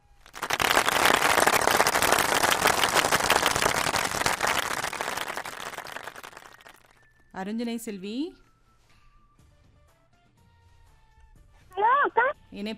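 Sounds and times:
applause: 0.0s - 7.0s
speech: 7.4s - 8.4s, 12.6s - 12.7s.

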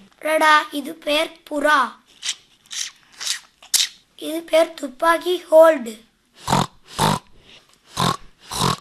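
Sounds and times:
speech: 0.3s - 2.4s, 4.2s - 6.1s
pig grunting: 6.4s - 7.3s, 8.0s - 8.7s.

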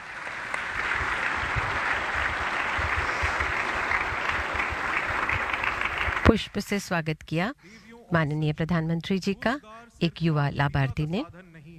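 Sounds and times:
audience applause: 0.0s - 6.3s
speech: 6.3s - 11.4s.

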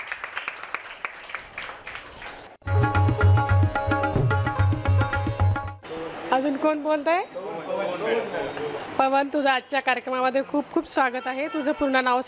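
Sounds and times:
faint clapping from a small group cheering on a student: 0.0s - 2.6s
loud music with a steady beat: 2.7s - 5.8s
speech: 6.5s - 12.2s.

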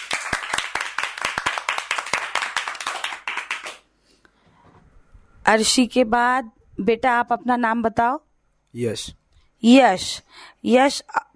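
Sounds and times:
children clapping loudly: 0.0s - 3.9s
speech: 5.5s - 11.3s.

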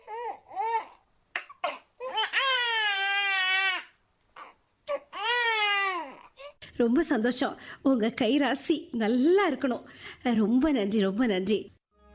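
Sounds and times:
newborn baby girl crying just after a normal delivery: 0.0s - 6.6s
speech: 6.8s - 11.8s.

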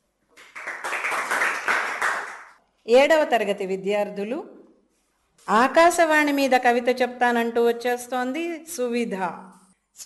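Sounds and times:
children's radio audience clapping for a young poet: 0.4s - 2.6s
speech: 2.9s - 4.6s, 5.4s - 10.0s.

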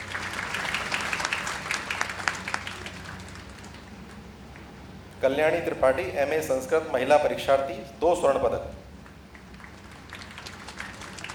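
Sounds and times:
audience applauding at a prize ceremony: 0.0s - 4.7s, 9.0s - 11.3s
speech: 5.2s - 8.8s.

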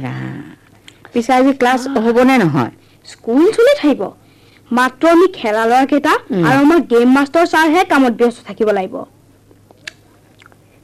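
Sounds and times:
speech: 0.0s - 9.1s
chewing with a full mouth: 9.7s - 10.8s.

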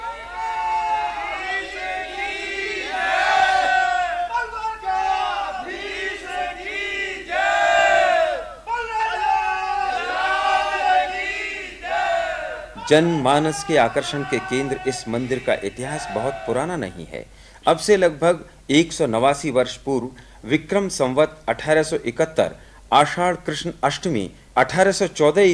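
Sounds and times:
crowd shouting devotional victory chants: 0.0s - 16.8s
speech: 12.9s - 25.5s.

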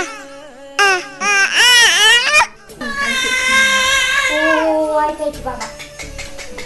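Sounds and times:
months-old baby crying: 0.0s - 4.8s.

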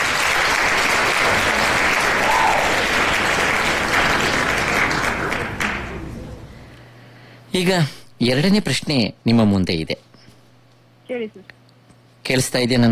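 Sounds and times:
studio audience applause for a quiz contestant's correct answer: 0.0s - 6.5s
speech: 7.6s - 10.1s, 11.1s - 11.6s, 12.2s - 12.9s.

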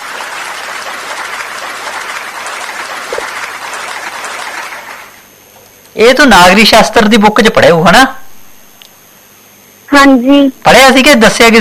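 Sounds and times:
audience clapping for a girl who answered a civics question: 0.0s - 5.2s
speech: 6.0s - 8.2s, 10.0s - 11.6s.

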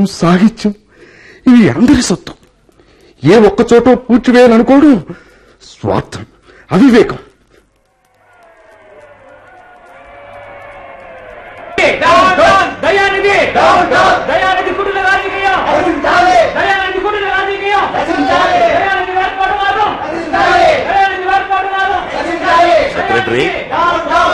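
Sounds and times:
speech: 0.0s - 0.8s, 1.4s - 2.4s, 3.2s - 7.3s, 11.9s - 14.5s
crowd shouting and chanting outside: 7.8s - 24.3s.

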